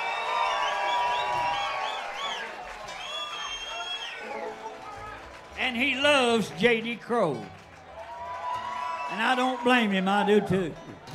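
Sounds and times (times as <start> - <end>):
audience clapping: 0.0 - 10.6
speech: 5.7 - 7.6, 9.1 - 11.1.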